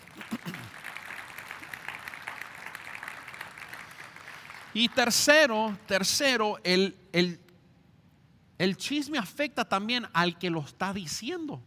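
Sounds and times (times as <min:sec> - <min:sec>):
audience applause: 0:00.0 - 0:04.8
speech: 0:04.8 - 0:07.4, 0:08.6 - 0:11.6.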